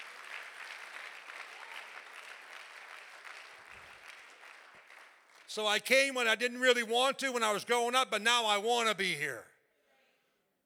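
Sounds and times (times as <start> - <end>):
church audience clapping hands: 0.0 - 6.4
speech: 5.5 - 9.5.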